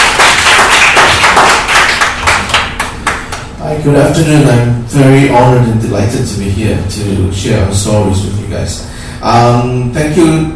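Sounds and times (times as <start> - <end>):
audience applause: 0.0 - 3.5
speech: 3.8 - 10.5.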